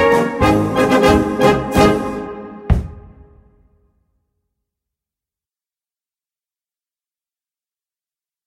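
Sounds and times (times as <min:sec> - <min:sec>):
polka music: 0:00.0 - 0:03.7.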